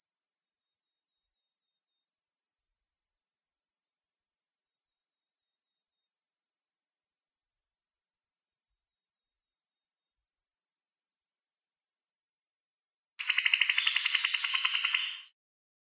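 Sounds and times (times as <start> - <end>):
hazel grouse calling: 13.2 - 15.2.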